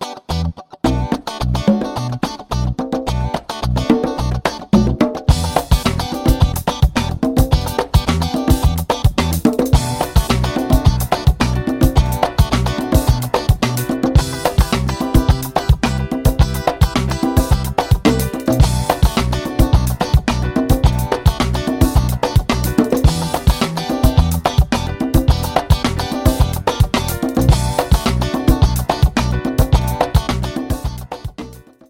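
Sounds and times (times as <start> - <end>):
funk ringtones: 0.3 - 31.7.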